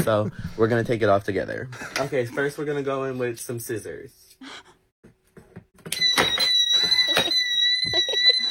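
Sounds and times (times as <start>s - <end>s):
speech: 0.0s - 4.7s
anti-theft tag alarm: 5.9s - 8.4s.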